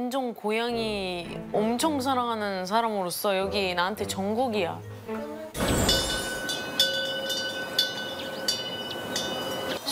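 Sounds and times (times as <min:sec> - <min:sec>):
speech: 0:00.0 - 0:05.4
wind chime ringing: 0:05.6 - 0:09.9.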